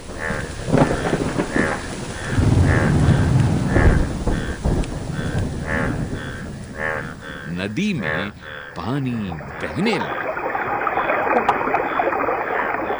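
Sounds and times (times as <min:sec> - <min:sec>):
thunder: 0:00.0 - 0:08.7
heavy rain: 0:00.0 - 0:12.9
speech: 0:07.6 - 0:10.2, 0:11.4 - 0:11.6.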